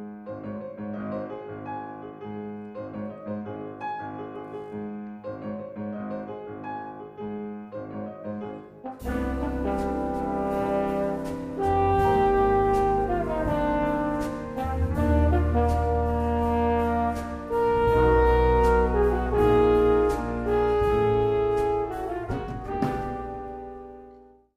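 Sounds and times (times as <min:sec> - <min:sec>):
horns: 0:08.6 - 0:24.3.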